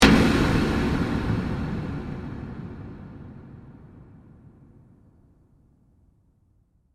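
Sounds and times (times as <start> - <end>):
dark horror hit: 0.0 - 5.4.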